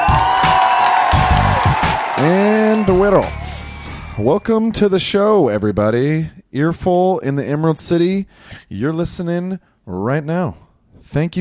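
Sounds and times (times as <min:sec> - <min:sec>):
audience clapping: 0:00.0 - 0:04.1
audience cheering and whooping: 0:00.0 - 0:04.6
speech: 0:02.2 - 0:03.4, 0:04.2 - 0:11.4.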